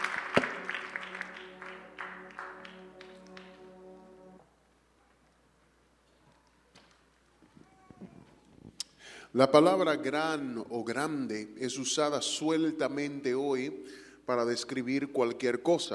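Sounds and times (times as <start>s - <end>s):
audience clapping: 0.0s - 4.4s
held organ-like chord: 0.0s - 4.6s
speech: 9.3s - 15.9s.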